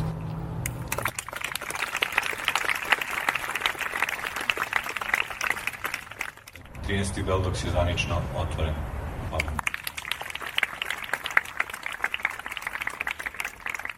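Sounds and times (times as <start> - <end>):
audience applause opening a film festival in Belgrade: 0.8 - 6.7, 9.5 - 13.9
speech: 6.9 - 9.6.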